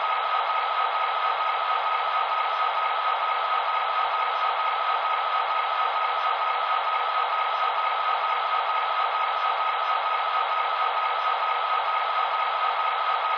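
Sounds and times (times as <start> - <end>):
SD45T diesel locomotive: 0.0 - 13.3.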